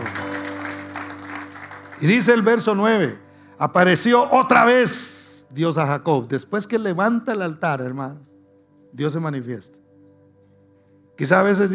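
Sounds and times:
audience applause: 0:00.0 - 0:02.6
speech: 0:02.0 - 0:08.3, 0:08.9 - 0:09.8, 0:11.2 - 0:11.7.

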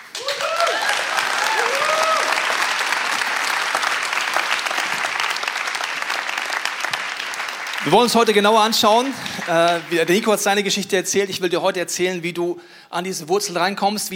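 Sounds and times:
applause: 0:00.0 - 0:10.6
speech: 0:07.9 - 0:14.1.

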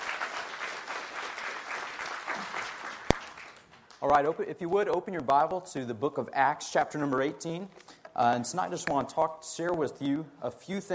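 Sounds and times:
audience applause: 0:00.0 - 0:04.0
speech: 0:04.0 - 0:10.9.

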